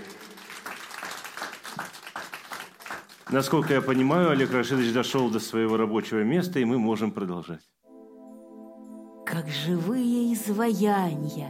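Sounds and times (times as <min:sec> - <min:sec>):
audience applause: 0:00.0 - 0:05.5
speech: 0:03.3 - 0:07.7, 0:09.4 - 0:11.4.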